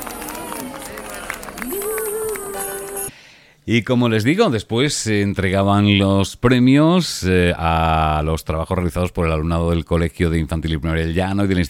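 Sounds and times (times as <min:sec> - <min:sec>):
crowd applause: 0:00.0 - 0:03.1
speech: 0:03.7 - 0:11.6.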